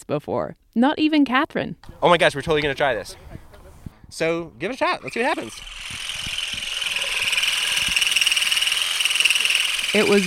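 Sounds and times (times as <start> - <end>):
speech: 0.1 - 3.4, 4.1 - 6.1, 10.0 - 10.2
vibrating olive harvesting rake motor whine: 5.1 - 10.2.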